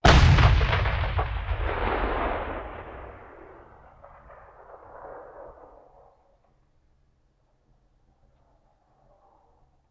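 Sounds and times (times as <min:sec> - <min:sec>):
artillery cannon firing: 0:00.0 - 0:06.1.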